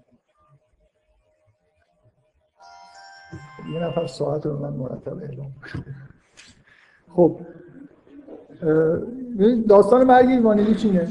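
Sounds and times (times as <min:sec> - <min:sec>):
clock alarm ringing: 0:02.6 - 0:04.5
speech: 0:03.3 - 0:06.5, 0:07.1 - 0:07.5, 0:08.6 - 0:11.1.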